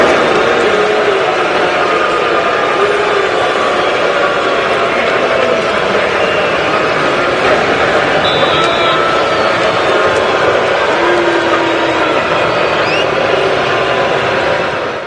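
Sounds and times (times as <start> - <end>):
stadium crowd booing: 0.0 - 15.0.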